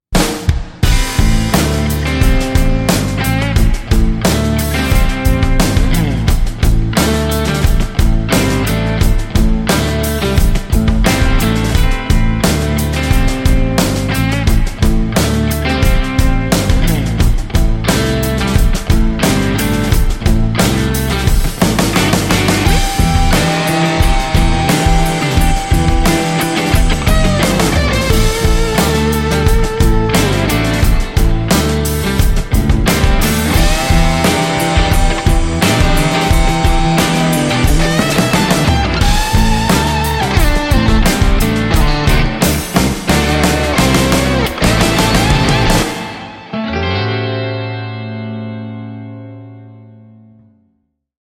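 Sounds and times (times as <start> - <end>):
blues guitar logo jingle: 0.1 - 50.6.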